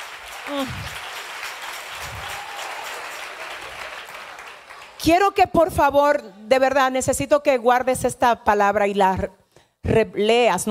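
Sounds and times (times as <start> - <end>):
audience applause: 0.0 - 5.1
speech: 0.5 - 1.0, 5.0 - 10.7.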